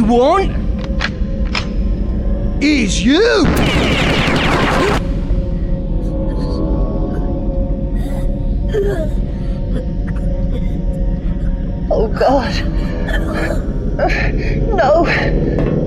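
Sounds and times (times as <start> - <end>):
loud steady droning hum with faint warbling tones: 0.0 - 15.8
speech: 0.1 - 0.6, 2.6 - 4.2, 8.8 - 9.2, 11.9 - 15.8
burst of gunfire on board a vessel: 3.4 - 5.2.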